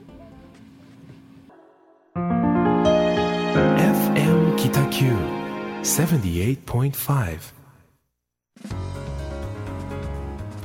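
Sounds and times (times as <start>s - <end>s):
pop song played on air: 1.6s - 6.3s
speech: 4.2s - 7.6s.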